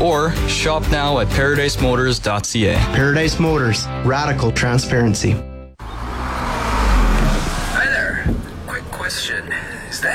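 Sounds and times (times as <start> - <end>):
speech: 0.0 - 5.5
car exhaust, engine running rich: 5.8 - 8.8.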